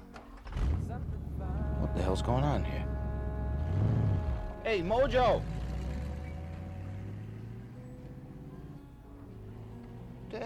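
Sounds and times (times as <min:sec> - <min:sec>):
taxi engine driving off: 0:00.2 - 0:10.4
speech: 0:02.0 - 0:02.9, 0:04.6 - 0:05.6.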